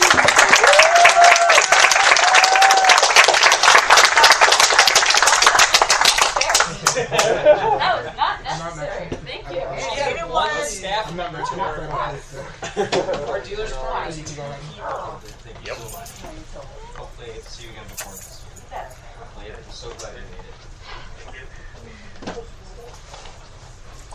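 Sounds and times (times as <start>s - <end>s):
voices cheering: 0.0s - 3.4s
audience applause: 0.0s - 7.4s
people laughing: 6.6s - 8.8s, 11.3s - 13.4s.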